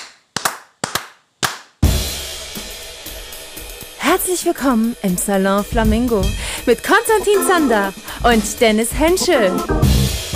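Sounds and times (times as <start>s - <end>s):
hand claps counting in: 0.0s - 1.8s
music: 1.8s - 10.3s
speech: 4.2s - 10.2s.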